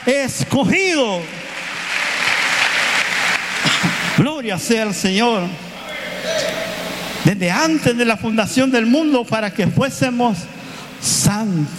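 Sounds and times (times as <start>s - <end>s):
speech: 0.0s - 1.4s, 4.2s - 5.7s, 7.2s - 11.7s
audience applause: 0.6s - 4.2s.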